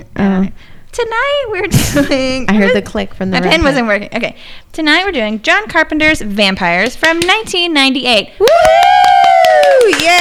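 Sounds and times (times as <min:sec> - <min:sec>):
speech: 0:00.0 - 0:09.1, 0:09.7 - 0:10.1
hand clapping: 0:08.4 - 0:10.1.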